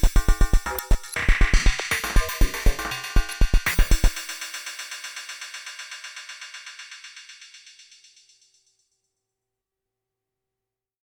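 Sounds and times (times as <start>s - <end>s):
drum machine: 0.0s - 5.4s.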